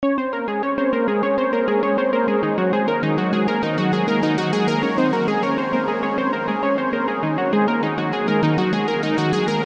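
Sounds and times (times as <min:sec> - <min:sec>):
synth: 0:00.0 - 0:09.6.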